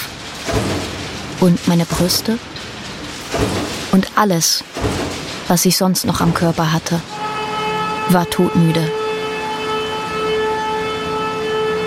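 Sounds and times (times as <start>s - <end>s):
speech: 1.4s - 2.5s, 3.3s - 7.2s, 8.1s - 9.0s
siren wailing: 7.0s - 11.8s.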